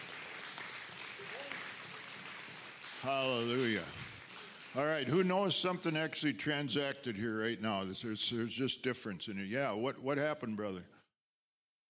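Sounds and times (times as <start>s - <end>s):
audience applauding: 0.0s - 5.9s
speech: 3.0s - 4.0s, 4.7s - 11.0s.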